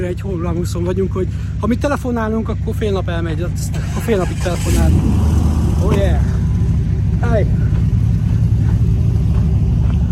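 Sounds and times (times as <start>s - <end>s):
speech: 0.0s - 6.4s, 7.2s - 7.7s
pickup truck engine rumbling while driving past: 0.0s - 10.0s.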